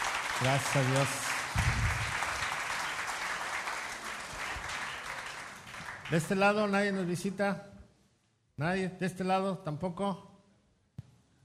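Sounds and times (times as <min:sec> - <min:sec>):
audience applause: 0:00.0 - 0:06.7
speech: 0:00.4 - 0:01.3, 0:06.1 - 0:07.8, 0:08.6 - 0:10.3.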